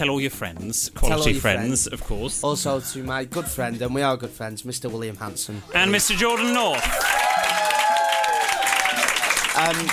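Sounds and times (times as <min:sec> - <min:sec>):
speech: 0:00.0 - 0:07.2, 0:09.6 - 0:09.9
crowd applause: 0:05.9 - 0:09.9
whoops and raised voices: 0:06.7 - 0:09.3.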